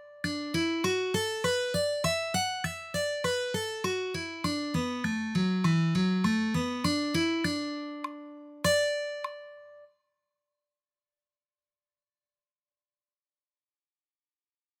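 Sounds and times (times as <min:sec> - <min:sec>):
guitar playing CAGED scale forms in D: 0:00.0 - 0:09.8.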